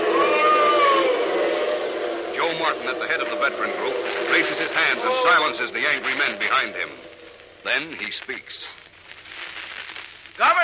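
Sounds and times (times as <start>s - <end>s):
crowd booing and hissing: 0.0s - 7.5s
speech: 2.9s - 7.0s, 7.6s - 8.8s, 10.4s - 10.6s.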